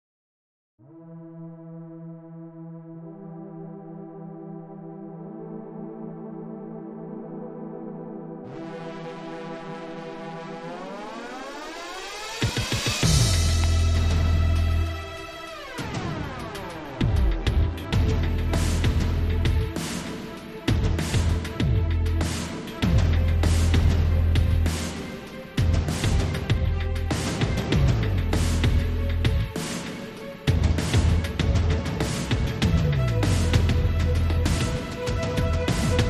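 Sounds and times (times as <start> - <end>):
climbing adrenaline music: 11.1 - 36.0.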